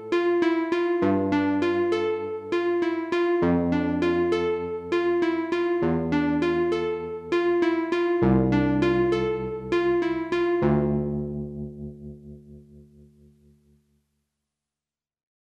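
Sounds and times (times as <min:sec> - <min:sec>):
V-Piano digital piano: 0:00.0 - 0:11.9.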